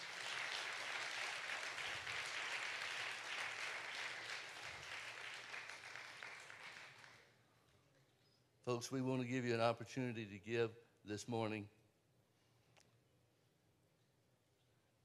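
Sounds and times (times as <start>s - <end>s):
crowd applauding: 0.0s - 7.3s
speech: 8.7s - 11.8s.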